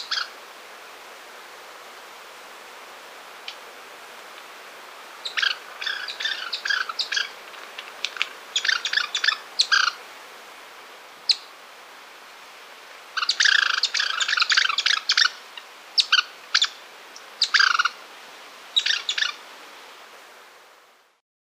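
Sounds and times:
Yellow-bellied Chat-Tyrant calling in South America: 0.0s - 0.4s, 5.2s - 10.0s, 11.3s - 11.5s, 13.1s - 18.0s, 18.8s - 19.4s.

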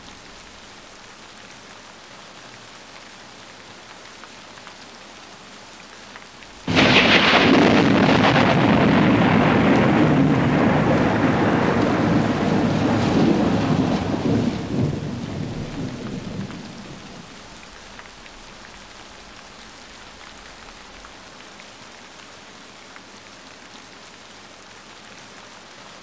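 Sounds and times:
rain: 0.0s - 26.0s
thunder in thunderstorms: 6.6s - 18.8s.

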